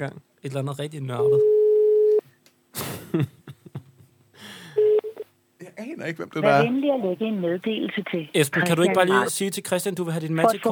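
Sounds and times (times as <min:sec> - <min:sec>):
speech: 0:00.0 - 0:01.6, 0:02.8 - 0:03.4, 0:05.8 - 0:10.7
telephone dialing tones: 0:01.2 - 0:02.2, 0:04.8 - 0:05.3.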